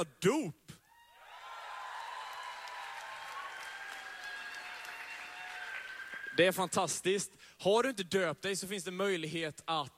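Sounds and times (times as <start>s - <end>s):
speech: 0.0s - 0.6s, 6.4s - 9.9s
audience cheering: 0.9s - 6.8s.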